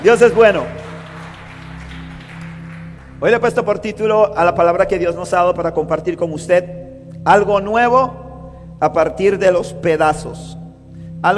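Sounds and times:
speech: 0:00.0 - 0:00.8, 0:03.2 - 0:08.2, 0:08.8 - 0:10.6
crowd clapping: 0:00.0 - 0:04.0
low sustained musical tone: 0:00.0 - 0:11.3.

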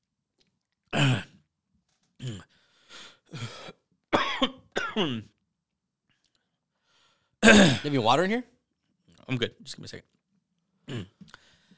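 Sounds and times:
speech: 0:00.9 - 0:01.3, 0:05.0 - 0:05.4, 0:07.5 - 0:08.5, 0:09.3 - 0:10.2, 0:10.9 - 0:11.4
person clearing throat: 0:00.9 - 0:01.4, 0:02.2 - 0:02.5, 0:03.4 - 0:05.3, 0:07.4 - 0:07.9, 0:10.9 - 0:11.2
person coughing: 0:01.0 - 0:01.4, 0:03.4 - 0:05.3, 0:07.4 - 0:07.9.

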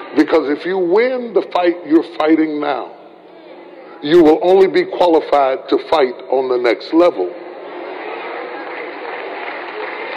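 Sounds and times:
speech: 0:00.2 - 0:03.0, 0:04.0 - 0:07.4
audience clapping: 0:08.2 - 0:10.1.

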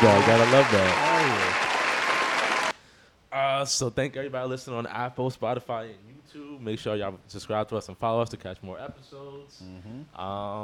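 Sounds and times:
speech: 0:00.0 - 0:01.1, 0:03.6 - 0:10.6
round of applause: 0:00.0 - 0:02.8.

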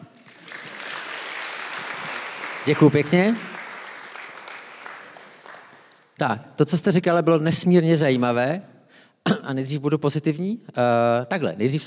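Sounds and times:
audience applause: 0:00.2 - 0:06.1
speech: 0:02.6 - 0:03.5, 0:06.2 - 0:11.8.

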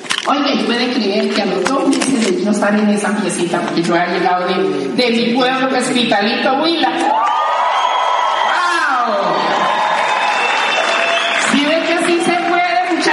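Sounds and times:
speech: 0:00.2 - 0:07.2
voices whooping and yelling: 0:07.0 - 0:11.5
crowd clapping and cheering: 0:07.1 - 0:13.1.

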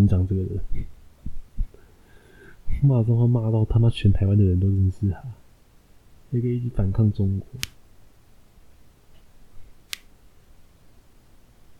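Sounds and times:
speech: 0:00.0 - 0:01.0, 0:02.8 - 0:05.4, 0:06.3 - 0:07.8
finger knuckles cracking: 0:09.9 - 0:10.1.

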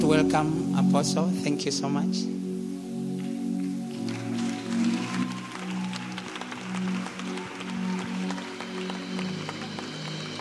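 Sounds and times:
speech: 0:00.2 - 0:02.5
audience clapping: 0:03.2 - 0:10.3.

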